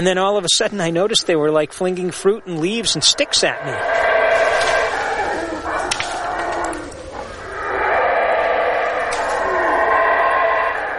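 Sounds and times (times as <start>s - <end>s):
speech: 0.0s - 4.8s
howler monkeys calling: 2.2s - 10.9s.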